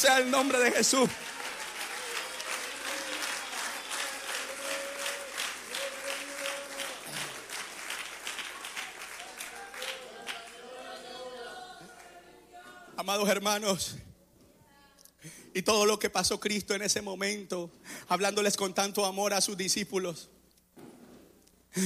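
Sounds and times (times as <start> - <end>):
speech: 0.0 - 1.5, 13.1 - 14.1, 15.2 - 20.4
audience clapping in worship: 0.0 - 12.3.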